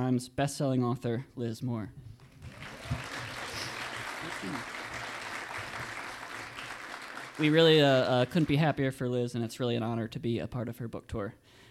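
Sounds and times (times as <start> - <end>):
speech: 0.1 - 3.0, 4.4 - 4.8, 7.4 - 11.6
audience applause: 2.2 - 8.7.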